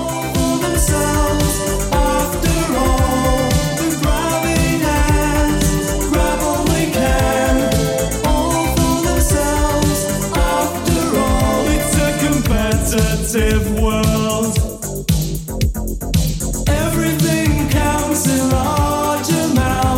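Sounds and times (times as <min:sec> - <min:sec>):
1980s drum machine beat: 0:00.0 - 0:19.9.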